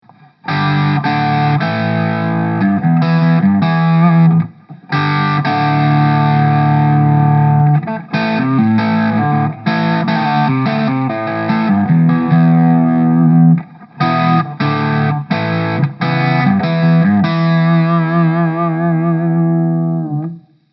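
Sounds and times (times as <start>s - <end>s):
electric guitar through VOX MV50 Boutique amp at full gain: 0.0s - 20.7s.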